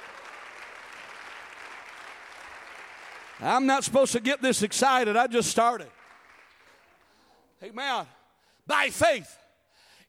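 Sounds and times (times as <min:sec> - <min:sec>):
crowd applauding: 0:00.0 - 0:07.3
speech: 0:03.4 - 0:06.0, 0:07.6 - 0:09.4.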